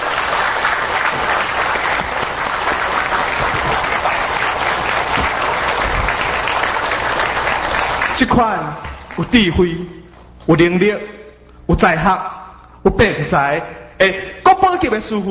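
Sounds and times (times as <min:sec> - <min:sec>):
warm audience applause: 0:00.0 - 0:09.4
speech: 0:08.2 - 0:15.2.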